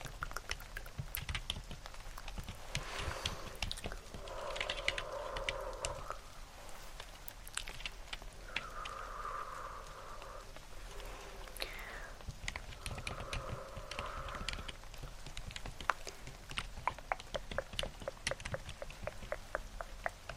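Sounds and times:
keyboard typing: 0:00.0 - 0:06.0, 0:12.3 - 0:20.3
low constant rumble: 0:00.0 - 0:20.3
rain: 0:00.0 - 0:20.3.

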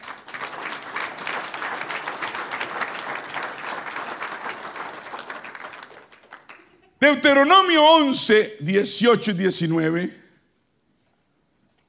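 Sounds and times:
church congregation applause: 0:00.0 - 0:08.0
speech: 0:07.1 - 0:10.2.

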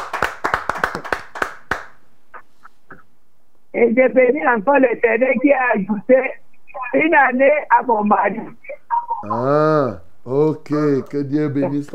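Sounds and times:
church congregation clapping: 0:00.0 - 0:02.0
speech: 0:03.8 - 0:08.6, 0:09.2 - 0:11.9.

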